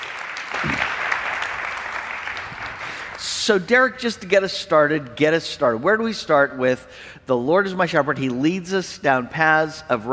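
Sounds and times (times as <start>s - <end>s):
audience at a church gathering applauding to welcome a speaker: 0.0s - 3.2s
speech: 3.5s - 10.1s.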